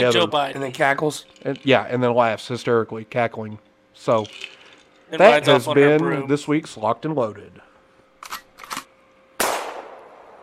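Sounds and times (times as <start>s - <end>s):
speech: 0.0s - 7.6s
gunshot sound effect: 9.4s - 10.4s.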